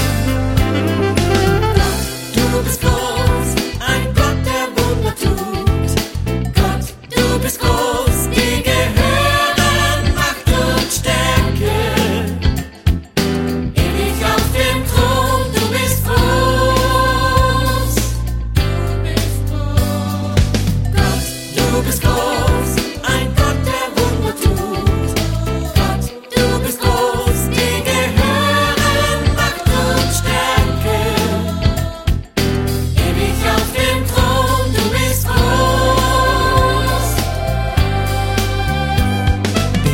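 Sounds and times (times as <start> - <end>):
gospel celebration choir singing: 0.2 - 12.7, 13.8 - 39.8.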